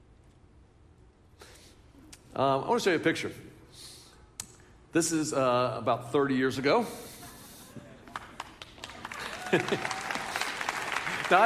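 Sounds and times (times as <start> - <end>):
speech: 2.4 - 3.5, 4.9 - 7.1, 9.5 - 9.9, 11.3 - 11.4
scattered audience applause: 8.0 - 11.4
people laughing: 9.1 - 10.5.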